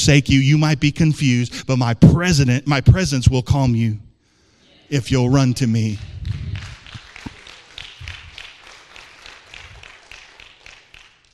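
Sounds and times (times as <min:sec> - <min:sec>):
speech: 0:00.0 - 0:04.1, 0:04.9 - 0:06.4
audience clapping: 0:05.7 - 0:11.3.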